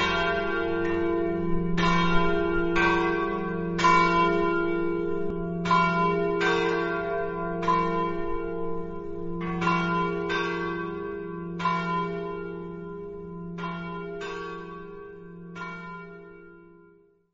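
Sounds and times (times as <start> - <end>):
bells in Palma: 0.0 - 17.0.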